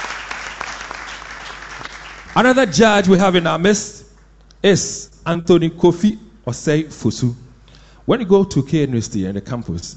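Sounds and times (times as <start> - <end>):
crowd clapping: 0.0 - 3.6
speech: 2.4 - 4.0, 4.6 - 7.4, 8.0 - 9.9.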